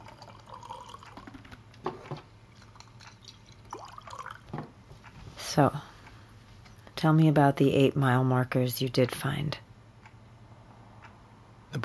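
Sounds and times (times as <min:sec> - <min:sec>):
whiskey trickling into a glass: 0:00.0 - 0:01.4, 0:02.5 - 0:04.5
low steady hum: 0:00.0 - 0:11.8
speech: 0:05.6 - 0:05.9, 0:07.0 - 0:09.6.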